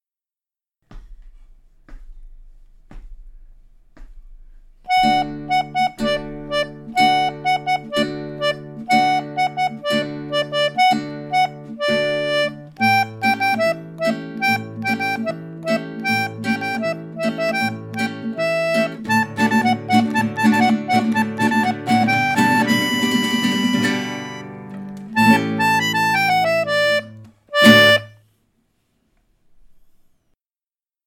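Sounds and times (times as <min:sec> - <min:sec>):
instrumental music without vocals: 0:00.9 - 0:28.4.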